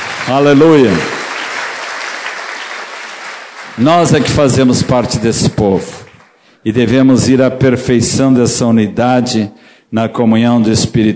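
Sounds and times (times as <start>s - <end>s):
church congregation clapping during a Portuguese-language sermon: 0.0s - 6.6s
speech: 0.3s - 1.1s, 3.8s - 11.1s.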